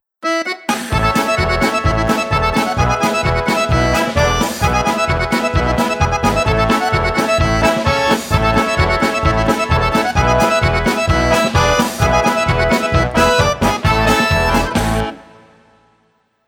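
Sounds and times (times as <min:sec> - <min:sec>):
funny Tyrolean polka: 0:00.2 - 0:15.8.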